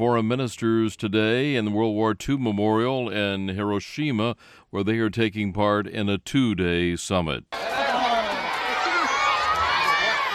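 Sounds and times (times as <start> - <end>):
speech: 0.0 - 7.7
Japanese schoolchildren cheering at the Hiroshima World War II memorial: 7.6 - 10.3.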